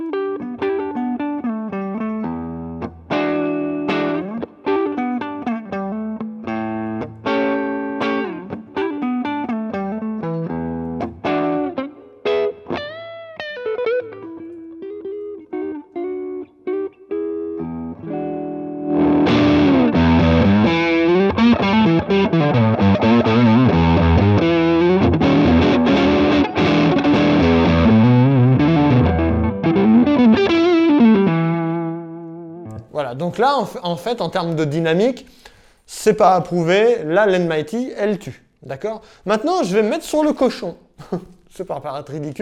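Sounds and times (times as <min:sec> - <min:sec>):
electric guitar through an amplifier with distortion: 0:00.0 - 0:32.9
speech: 0:33.4 - 0:35.4, 0:36.0 - 0:42.4.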